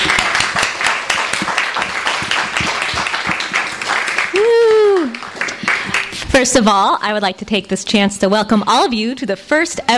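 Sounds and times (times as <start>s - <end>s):
audience round of applause: 0.0s - 6.2s
speech: 6.4s - 9.9s.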